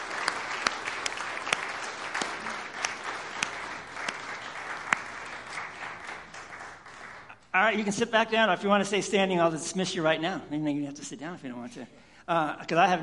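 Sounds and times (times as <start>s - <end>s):
standing ovation applause from a large crowd: 0.0s - 7.4s
speech: 7.6s - 13.0s.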